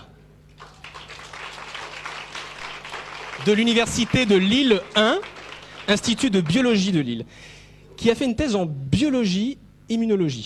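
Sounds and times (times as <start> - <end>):
faint low hum: 0.0 - 10.4
audience applause at a university event: 0.6 - 7.0
speech: 3.4 - 5.3, 5.9 - 10.4.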